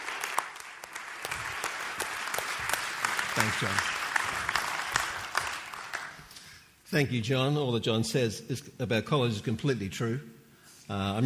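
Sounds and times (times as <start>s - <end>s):
audience applause welcoming a speaker to the stage: 0.0s - 6.6s
speech: 3.4s - 4.0s, 6.9s - 11.2s.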